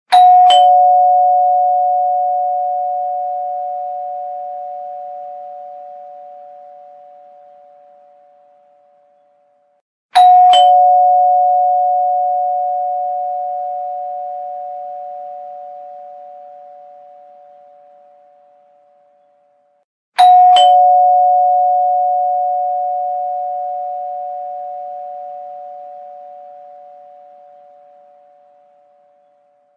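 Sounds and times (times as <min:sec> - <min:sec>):
doorbell: 0:00.1 - 0:07.9, 0:10.2 - 0:17.5, 0:20.2 - 0:27.7.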